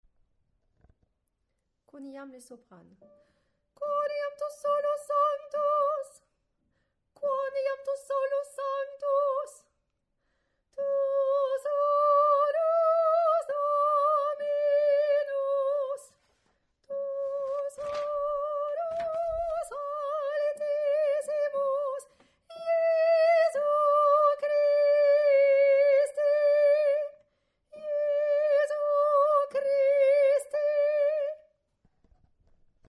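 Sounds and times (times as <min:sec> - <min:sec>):
soprano singing: 0:03.8 - 0:06.3, 0:07.2 - 0:09.7, 0:10.8 - 0:16.2, 0:16.8 - 0:27.2, 0:27.8 - 0:31.5.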